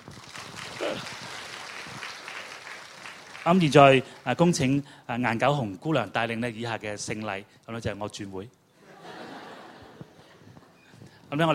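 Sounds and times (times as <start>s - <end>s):
audience applause: 0.0s - 4.3s
speech: 0.8s - 1.2s, 3.4s - 8.6s, 11.3s - 11.5s
laughter: 8.8s - 10.5s.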